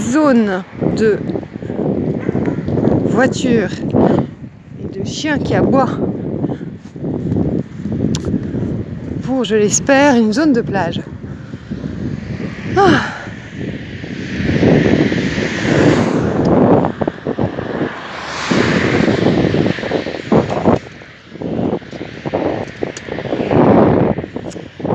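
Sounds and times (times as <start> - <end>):
heavy trucks on a nearby motorway: 0.0 - 24.9
speech: 0.1 - 1.6, 3.2 - 4.2, 5.0 - 6.1, 9.3 - 11.1, 12.8 - 13.2.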